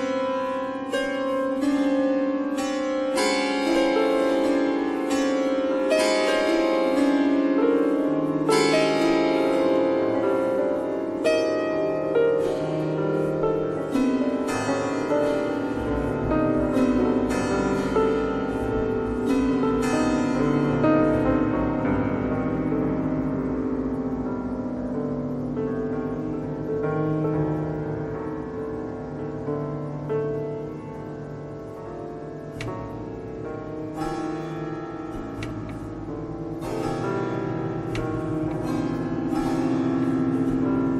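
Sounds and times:
piano string noise: 0.0 - 40.9.

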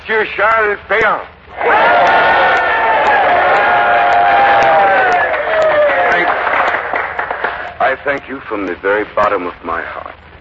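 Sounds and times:
speech: 0.1 - 2.5, 7.9 - 10.2
crowd cheering a man's arrival: 1.5 - 8.0
applause: 1.7 - 8.3.

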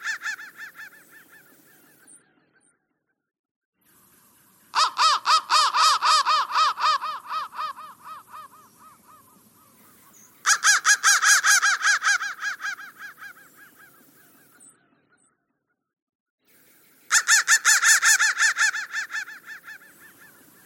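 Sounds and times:
crow calling harshly: 0.0 - 1.6, 4.7 - 14.0, 17.1 - 20.6.

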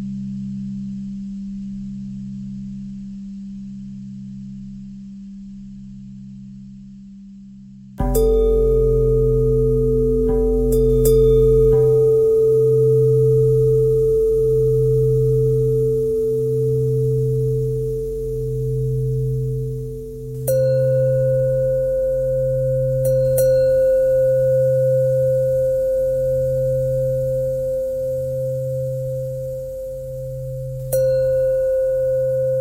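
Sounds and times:
bending bell tone: 8.0 - 32.5.

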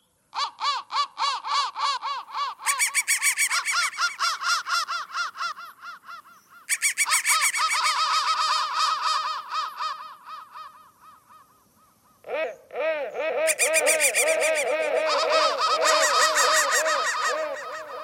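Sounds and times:
crow cawing: 0.4 - 12.5, 13.1 - 18.0.

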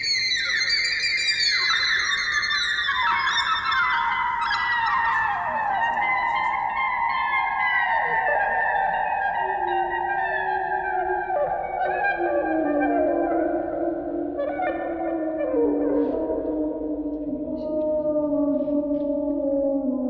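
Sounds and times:
clarinet: 0.0 - 19.1.

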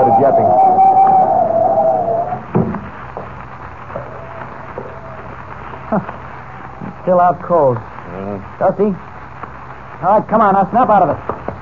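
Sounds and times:
howling wind of a blinding snowstorm: 0.0 - 8.0
speech: 0.2 - 0.8, 7.1 - 9.1, 10.0 - 11.3
dull thumps: 2.4 - 3.4.

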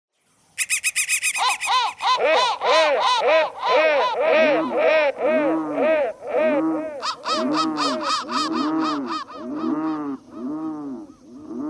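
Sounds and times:
crow cawing: 0.7 - 11.2.

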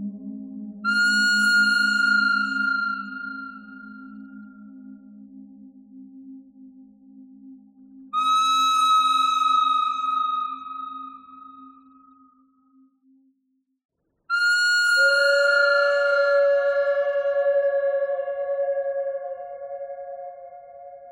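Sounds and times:
pentatonic bird melody: 0.9 - 4.7, 8.1 - 12.1, 14.3 - 21.1.

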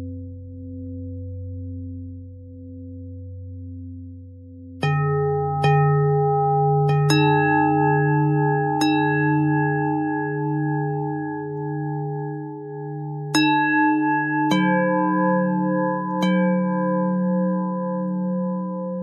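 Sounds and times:
pentatonic bell melody: 4.8 - 19.0.

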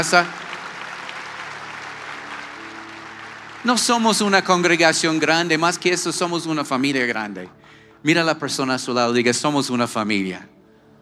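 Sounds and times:
speech: 0.0 - 0.4, 3.6 - 10.6
audience applause: 0.0 - 7.5.

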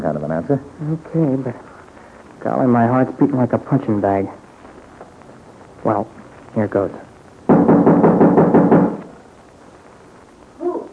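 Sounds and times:
speech: 0.0 - 1.7, 2.4 - 4.4, 5.8 - 7.0
knocking on a door: 7.5 - 9.0
voice calling out: 10.6 - 10.9.

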